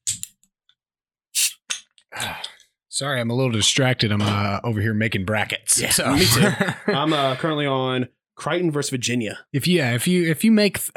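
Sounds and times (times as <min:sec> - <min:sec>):
cold can of Guinness being cracked open with hiss: 0:01.4 - 0:01.7
speech: 0:03.0 - 0:10.9
laughter: 0:06.0 - 0:07.4.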